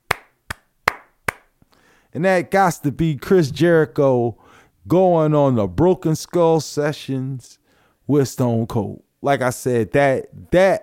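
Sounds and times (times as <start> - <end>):
golf clap: 0.0 - 1.5
speech: 2.1 - 10.8.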